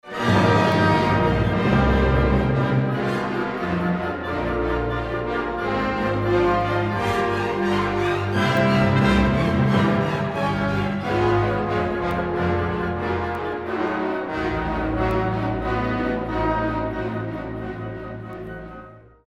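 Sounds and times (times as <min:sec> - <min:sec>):
trombones: 0:00.0 - 0:19.2.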